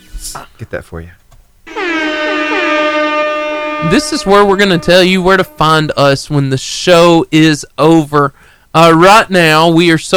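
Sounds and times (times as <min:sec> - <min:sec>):
speech: 0:00.2 - 0:01.2, 0:03.8 - 0:10.1
air horn buzzer sound effect: 0:01.7 - 0:05.9.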